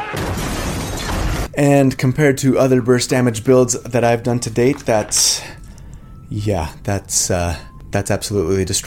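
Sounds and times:
table flipped over and crashing: 0.2s - 1.5s
speech: 1.6s - 5.6s, 6.3s - 8.8s.

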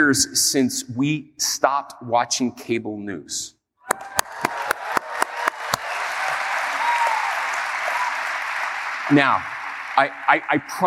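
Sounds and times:
speech: 0.0s - 4.2s, 9.1s - 10.8s
audience applause: 3.9s - 10.8s.

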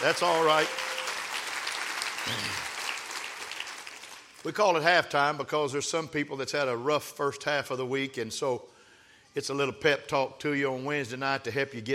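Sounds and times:
speech: 0.0s - 1.0s, 2.3s - 2.7s, 4.4s - 8.7s, 9.3s - 11.9s
audience clapping: 0.0s - 4.5s.

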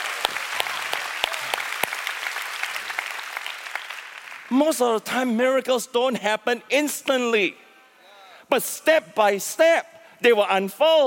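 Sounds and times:
audience clapping: 0.0s - 4.6s
speech: 4.5s - 7.6s, 8.5s - 11.0s.

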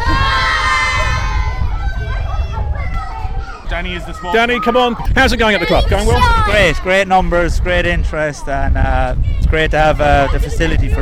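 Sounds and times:
parade crowd cheering: 0.0s - 6.9s
speech: 3.8s - 11.0s.

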